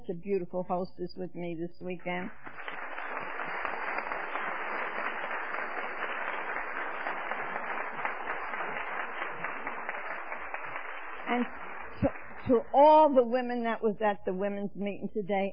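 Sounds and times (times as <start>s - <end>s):
speech: 0.1s - 2.7s, 11.3s - 15.5s
crowd applauding: 2.2s - 12.9s.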